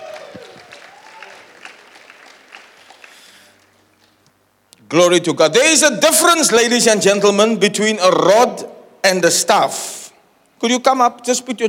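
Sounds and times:
audience clapping: 0:00.0 - 0:04.3
speech: 0:04.9 - 0:10.0, 0:10.6 - 0:11.6.

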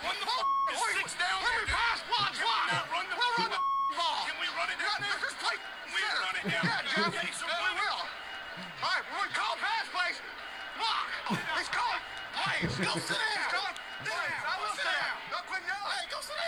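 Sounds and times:
mid-pitched censor bleeps over swearing: 0:00.0 - 0:05.8
laughter: 0:00.0 - 0:16.4
man talking loudly and agitatedly: 0:00.0 - 0:16.4.

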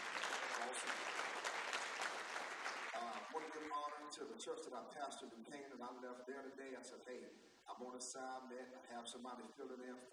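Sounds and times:
audience clapping hands: 0:00.0 - 0:04.1
speech: 0:03.4 - 0:10.1.

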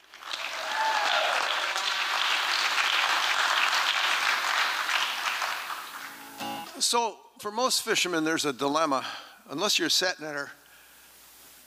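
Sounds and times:
audience applause: 0:00.0 - 0:06.4
speech: 0:06.8 - 0:10.6.

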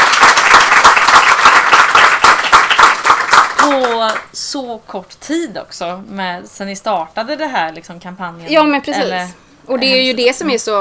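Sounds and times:
group applause: 0:00.0 - 0:04.3
speech: 0:03.7 - 0:10.7.

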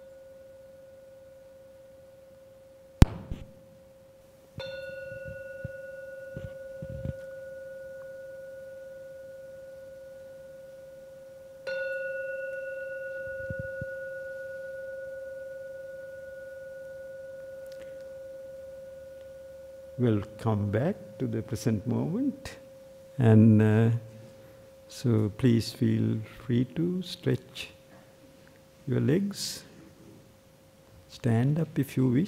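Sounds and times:
meditation bell ringing: 0:04.6 - 0:26.2
speech: 0:20.0 - 0:22.6, 0:23.2 - 0:24.1, 0:24.9 - 0:27.8, 0:28.9 - 0:29.7, 0:31.2 - 0:32.2.

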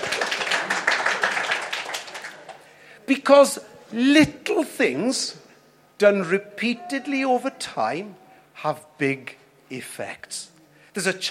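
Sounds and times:
audience applauding: 0:00.0 - 0:02.7
speech: 0:03.1 - 0:05.4, 0:06.0 - 0:11.2.

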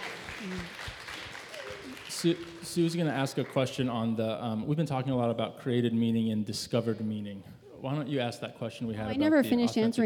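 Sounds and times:
group clapping: 0:00.0 - 0:04.0
speech: 0:00.4 - 0:00.8, 0:02.2 - 0:10.0.

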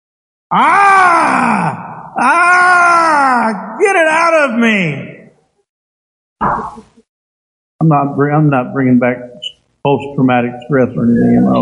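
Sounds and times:
person imitating a suffering child groaning: 0:00.5 - 0:02.5
speech: 0:00.5 - 0:02.6, 0:03.4 - 0:05.1, 0:07.8 - 0:11.6.

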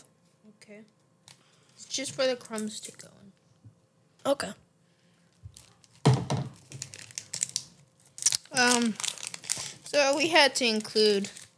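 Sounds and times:
speech: 0:00.6 - 0:01.0, 0:01.8 - 0:03.4, 0:04.2 - 0:04.6, 0:08.5 - 0:09.1, 0:09.9 - 0:11.4
snack wrapper crinkling as it is torn open: 0:05.3 - 0:11.5.

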